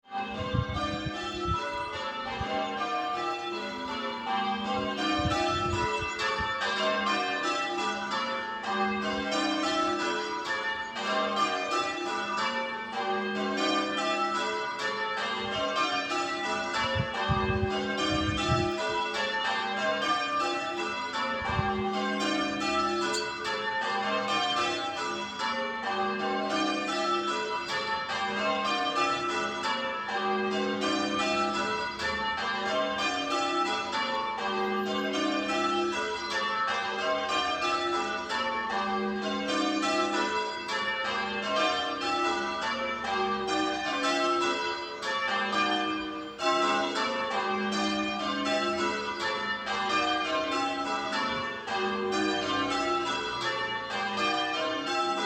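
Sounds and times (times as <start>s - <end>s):
bells ringing: 0.1s - 55.2s.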